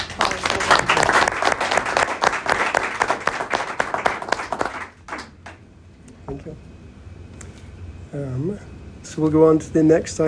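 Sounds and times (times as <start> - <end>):
audience applause: 0.0 - 5.6
speech: 8.4 - 10.2.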